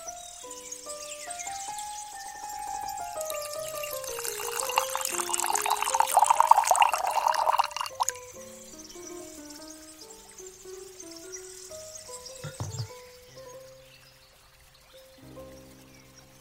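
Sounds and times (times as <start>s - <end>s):
small clinks and drips: 2.9s - 8.2s
tea pouring: 3.0s - 8.3s.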